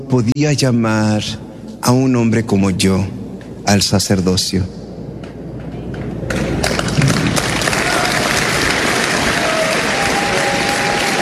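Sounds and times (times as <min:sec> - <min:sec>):
speech: 0:00.0 - 0:04.8
audience applause: 0:06.3 - 0:11.2.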